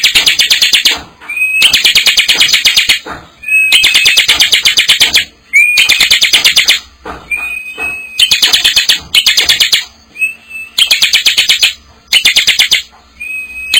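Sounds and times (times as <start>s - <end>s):
bar-winged prinia delivering bursts of rapid harsh ticking notes: 0.0s - 13.7s.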